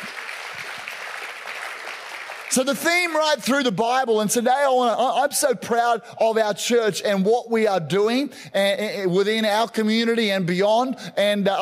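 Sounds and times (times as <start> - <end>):
audience applause: 0.0 - 2.7
speech: 2.5 - 11.6.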